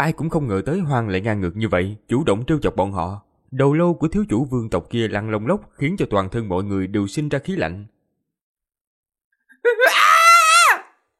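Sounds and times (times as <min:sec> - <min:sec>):
speech: 0:00.0 - 0:08.0, 0:09.6 - 0:10.0
man screaming in terror: 0:09.6 - 0:11.0.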